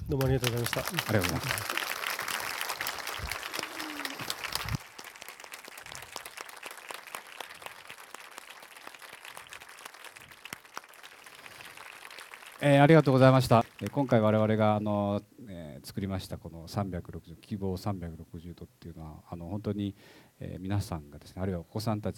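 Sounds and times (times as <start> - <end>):
audience applause: 0.0 - 14.6
speech: 0.1 - 1.8, 12.6 - 22.1.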